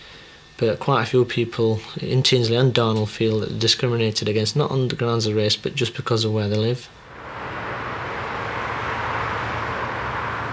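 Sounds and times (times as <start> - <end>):
speech: 0.6 - 7.0
heavy motorway traffic of cars and trucks: 7.0 - 10.5.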